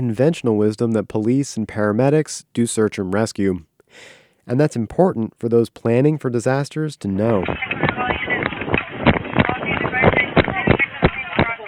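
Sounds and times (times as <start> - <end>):
speech: 0.0 - 8.0
sheriff's deputy running toward Pulse Nightclub carrying a stretcher: 7.3 - 11.6
wind buffeting the microphone: 7.3 - 11.6.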